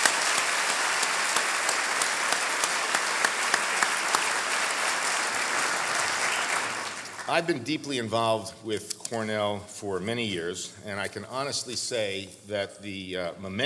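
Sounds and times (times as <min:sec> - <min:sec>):
round of applause: 0:00.0 - 0:07.6
speech: 0:07.3 - 0:13.6.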